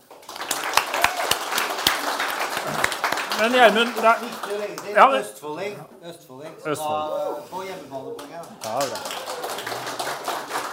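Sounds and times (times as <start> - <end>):
audience applause: 0.0 - 5.2, 8.2 - 10.7
speech: 2.7 - 9.7.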